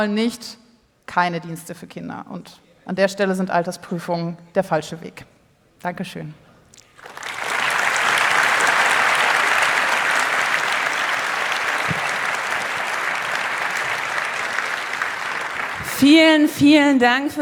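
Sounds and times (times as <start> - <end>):
speech: 0.0 - 6.4, 16.0 - 17.3
audience applause after a talk: 6.9 - 16.5.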